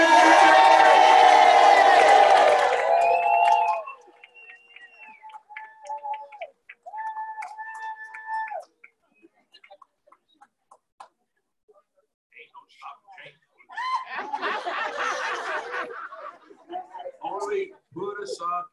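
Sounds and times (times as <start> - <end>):
crowd cheering with shouts and whoops: 0.0 - 8.9, 13.7 - 16.6
laughter: 13.6 - 18.7.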